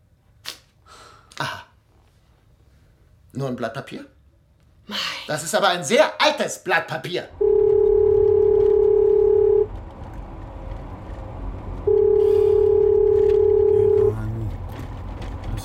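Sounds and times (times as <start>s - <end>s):
speech: 3.4s - 4.2s, 4.9s - 7.4s
telephone ringing tone: 7.4s - 9.7s, 11.9s - 14.2s.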